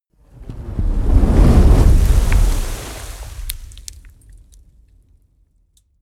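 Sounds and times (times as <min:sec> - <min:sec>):
large fire crackling: 0:00.2 - 0:05.0
fireball whoosh: 0:00.3 - 0:04.1.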